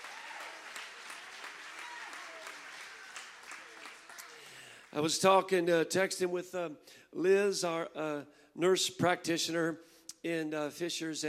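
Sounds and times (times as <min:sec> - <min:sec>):
audience clapping hands: 0:00.0 - 0:05.2
speech: 0:04.9 - 0:11.2.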